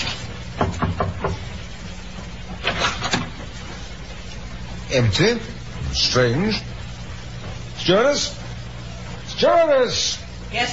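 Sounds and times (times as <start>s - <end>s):
low mechanical hum: 0.0s - 10.7s
knocking on a cabin door: 0.6s - 1.4s
speech: 4.9s - 6.7s, 7.9s - 8.4s, 9.4s - 10.7s.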